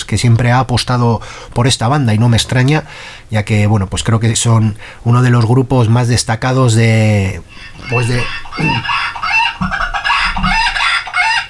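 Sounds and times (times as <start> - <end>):
speech: 0.1 - 9.8
rooster crowing: 7.5 - 11.4.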